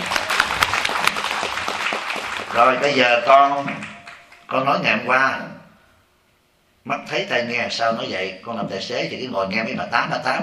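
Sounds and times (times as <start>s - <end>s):
listeners applauding at a Buddhist Medicine Buddha ceremony gathering: 0.0s - 4.6s
speech: 2.6s - 3.8s, 4.5s - 5.6s, 6.8s - 10.4s.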